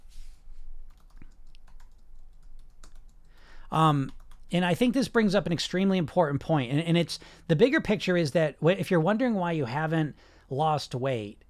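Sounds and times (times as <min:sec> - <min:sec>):
keyboard typing as a note is written: 0:00.8 - 0:05.0
speech: 0:03.7 - 0:11.4.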